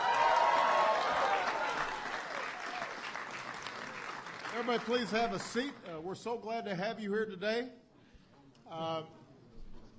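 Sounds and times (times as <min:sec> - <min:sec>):
crowd applause at the White House for the Alabama Crimson Tide: 0:00.0 - 0:05.8
speech: 0:04.6 - 0:07.8, 0:08.7 - 0:09.2.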